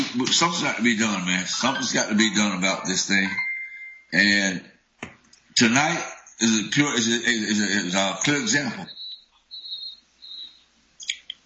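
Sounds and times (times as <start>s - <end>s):
speech: 0.2s - 3.5s, 4.1s - 4.7s, 5.6s - 9.0s
whistles blowing: 8.9s - 10.6s.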